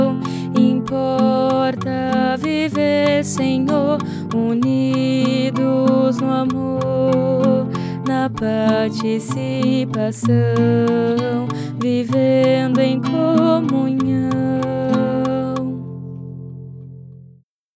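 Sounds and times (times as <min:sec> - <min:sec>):
contralto voice: 0:00.0 - 0:16.0.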